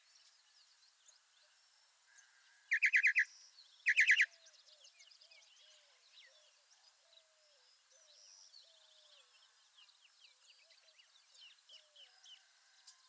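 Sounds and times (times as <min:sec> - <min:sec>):
Northern Mockingbird Mimus polyglottos: 0:03.9 - 0:04.3.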